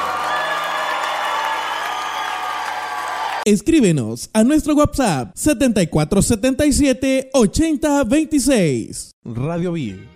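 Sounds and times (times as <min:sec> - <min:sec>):
audience applause: 0:00.0 - 0:03.4
speech: 0:03.4 - 0:10.1.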